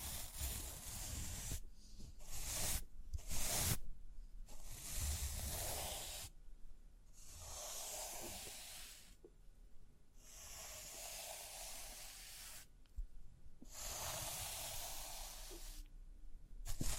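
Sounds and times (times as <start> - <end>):
brushing and scratching over rhinestones: 0.0 - 1.6, 2.2 - 3.8, 4.5 - 6.3, 7.2 - 9.2, 10.3 - 12.8, 13.7 - 15.9, 16.7 - 16.9.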